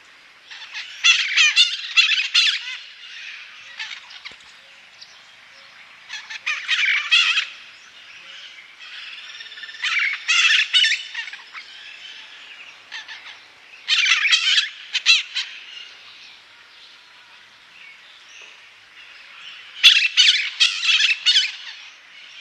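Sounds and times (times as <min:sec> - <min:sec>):
bird harsh squawks: 0:00.5 - 0:04.4, 0:06.1 - 0:07.7, 0:08.4 - 0:15.9, 0:19.7 - 0:22.0.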